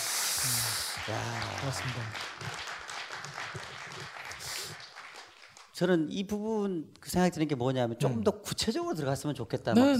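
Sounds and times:
speech: 0:00.4 - 0:02.6, 0:05.8 - 0:09.9
audience applause: 0:00.4 - 0:05.7.

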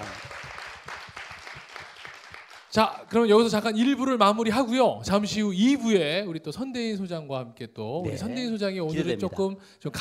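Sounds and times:
audience applause: 0:00.0 - 0:02.8
speech: 0:02.7 - 0:09.9.

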